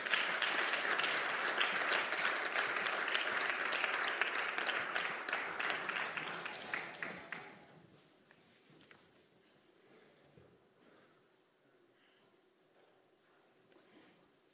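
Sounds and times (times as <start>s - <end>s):
audience applause: 0.0s - 7.7s.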